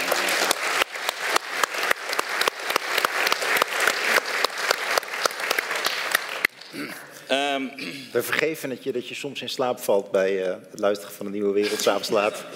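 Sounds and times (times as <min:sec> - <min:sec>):
audience applause: 0:00.0 - 0:06.8
speech: 0:07.3 - 0:12.5.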